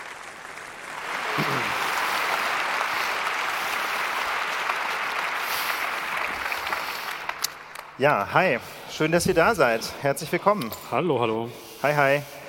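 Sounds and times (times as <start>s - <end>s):
loud applause: 0.0s - 8.0s
speech: 8.0s - 12.4s.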